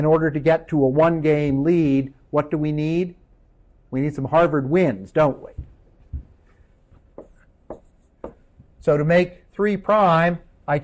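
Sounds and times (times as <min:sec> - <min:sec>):
speech: 0:00.0 - 0:03.2, 0:03.9 - 0:05.7, 0:08.8 - 0:10.8
writing on a board: 0:05.5 - 0:08.7.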